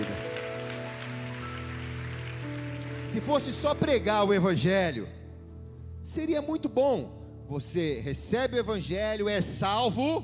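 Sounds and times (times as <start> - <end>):
audience applause: 0.0 - 3.8
speech: 3.1 - 5.2, 6.0 - 10.2.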